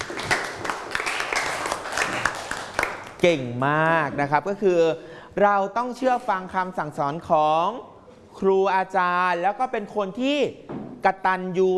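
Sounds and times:
classroom of students clapping: 0.0 - 3.2
speech: 3.2 - 11.7.

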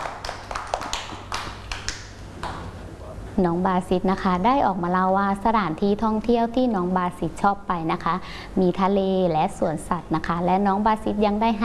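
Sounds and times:
children clapping: 0.0 - 2.7
speech: 3.4 - 11.6.

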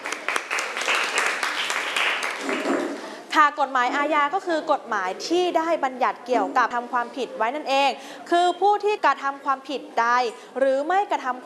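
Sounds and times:
classroom students clapping: 0.0 - 3.0
speech: 3.4 - 11.4.

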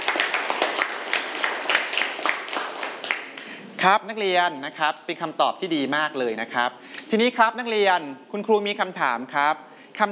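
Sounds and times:
classroom clapping: 0.0 - 3.6
speech: 3.8 - 10.1.

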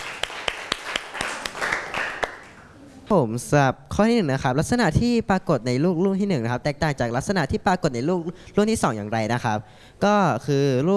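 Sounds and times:
classroom clapping: 0.0 - 2.6
speech: 3.1 - 10.9.

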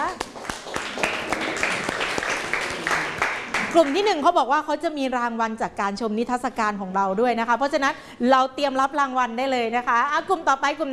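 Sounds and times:
audience applause: 0.2 - 4.0
speech: 3.7 - 10.9.

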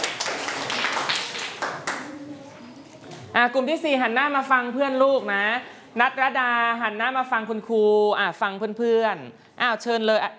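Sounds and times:
classroom applause: 0.0 - 2.5
speech: 3.4 - 10.3.

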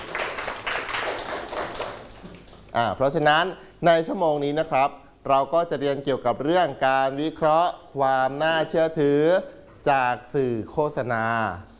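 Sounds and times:
school class clapping for a classmate: 0.0 - 2.7
speech: 2.8 - 11.7.

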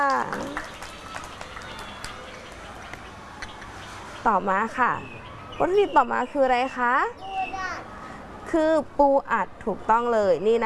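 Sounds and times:
speech: 0.0 - 0.7, 4.2 - 7.3, 8.5 - 10.6
group of children clapping in applause: 0.0 - 3.0.

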